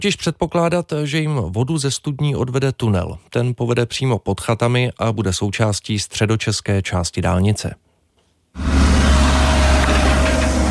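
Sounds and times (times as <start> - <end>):
speech: 0.0 - 7.9
diesel machine of a tracked horizontal drilling rig running: 8.6 - 10.7.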